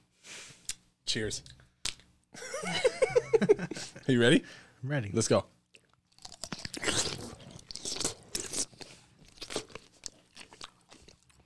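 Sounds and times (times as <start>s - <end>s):
speech: 1.1s - 1.6s, 2.4s - 5.6s
laughter: 2.4s - 4.1s
crunchy bite and chewing of a pickle: 5.8s - 11.4s.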